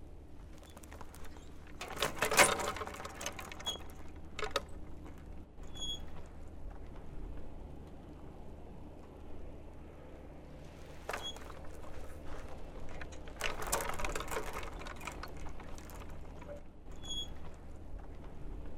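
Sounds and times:
swing on chains being pushed and swinging: 0:00.4 - 0:06.6, 0:10.9 - 0:18.7.

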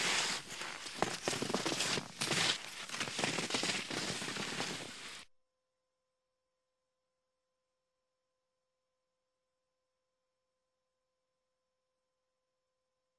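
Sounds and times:
two skiers running by: 0:00.0 - 0:05.2.

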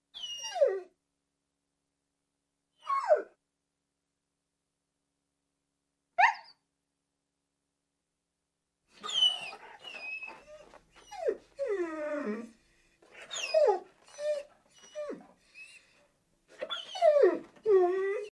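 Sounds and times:
dog whining plaintively and yelping: 0:00.2 - 0:00.9, 0:09.0 - 0:18.3.

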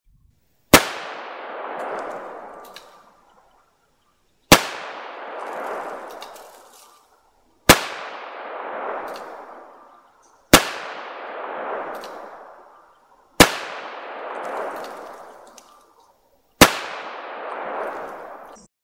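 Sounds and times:
Smith and Wesson Model 10 single gunshots: 0:00.7 - 0:03.1, 0:04.5 - 0:06.7, 0:07.6 - 0:09.9, 0:10.5 - 0:12.8, 0:13.4 - 0:15.6, 0:16.6 - 0:18.6.

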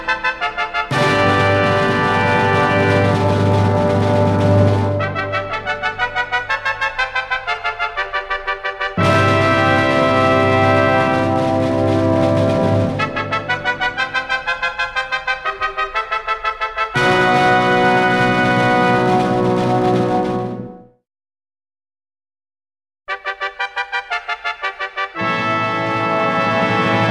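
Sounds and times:
festive fanfare for the start of a celebration: 0:00.0 - 0:20.8, 0:23.1 - 0:27.0.

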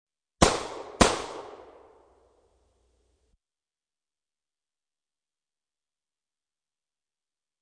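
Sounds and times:
.38 calibre pistol shot in the street: 0:00.4 - 0:02.1.

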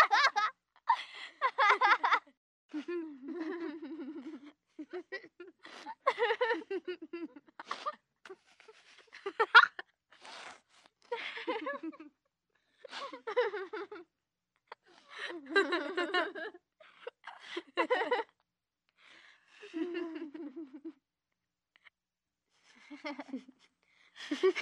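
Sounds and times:
three children laughing: 0:00.0 - 0:09.8, 0:11.1 - 0:12.1, 0:12.9 - 0:14.0, 0:15.1 - 0:18.3.

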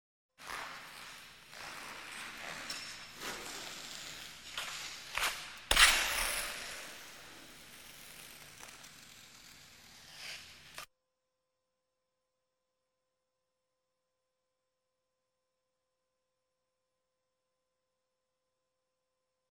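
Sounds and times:
ice skate approaching across ice: 0:00.4 - 0:10.9.

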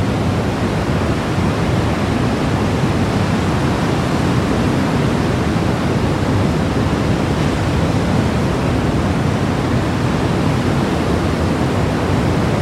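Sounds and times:
hurricane: 0:00.0 - 0:12.5.

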